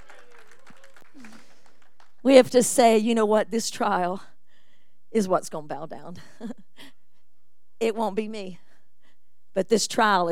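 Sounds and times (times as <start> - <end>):
audience hand clapping: 0.0 - 2.3
speech: 2.2 - 4.3, 5.1 - 6.9, 7.8 - 8.6, 9.6 - 10.3.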